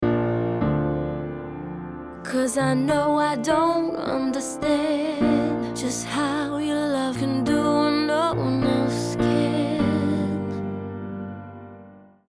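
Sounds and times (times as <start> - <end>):
dull piano: 0.0 - 12.3.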